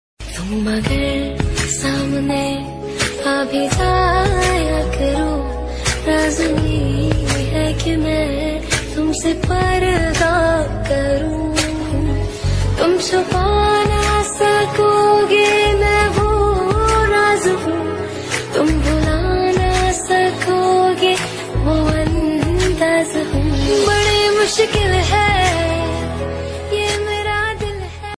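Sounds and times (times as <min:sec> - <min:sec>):
romantic international love background music ringtone: 0:00.2 - 0:28.1.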